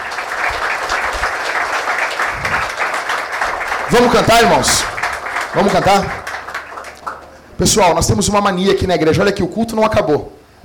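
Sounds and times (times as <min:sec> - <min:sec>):
audience applauding: 0:00.0 - 0:07.8
speech: 0:03.9 - 0:04.9, 0:05.5 - 0:06.2, 0:07.6 - 0:10.6.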